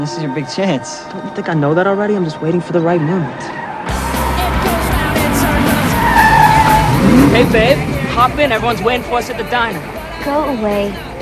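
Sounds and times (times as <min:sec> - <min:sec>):
speech: 0:00.0 - 0:03.6, 0:07.2 - 0:11.1
sports car tires skidding: 0:02.6 - 0:10.0
sports car pulling up: 0:03.9 - 0:09.5.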